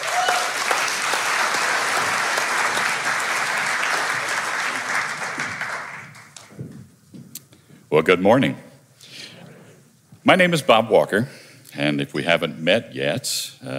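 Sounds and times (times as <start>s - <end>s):
congregation applause at a church service after a prayer: 0.0s - 6.6s
speech: 8.0s - 8.6s, 10.3s - 13.7s.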